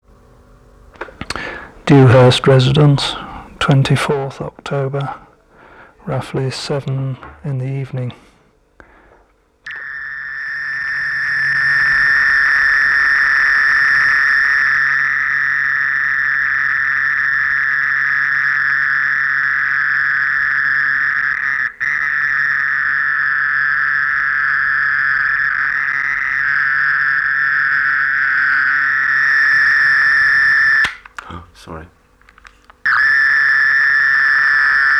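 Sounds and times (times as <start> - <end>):
mole cricket trilling: 0.8 - 5.4, 9.6 - 34.9
speech: 1.9 - 5.2, 6.0 - 8.2.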